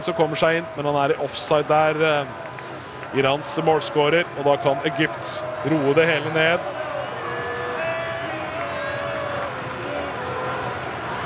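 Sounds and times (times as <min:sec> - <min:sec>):
speech: 0:00.0 - 0:06.8
large stadium crowd cheering: 0:00.0 - 0:11.2.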